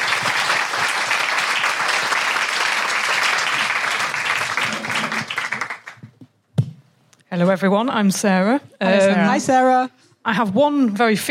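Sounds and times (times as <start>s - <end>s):
audience applause: 0.0s - 6.1s
speech: 7.3s - 11.3s.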